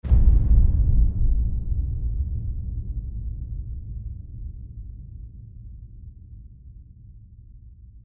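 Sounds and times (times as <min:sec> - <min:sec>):
epic low hit: 0:00.0 - 0:06.4.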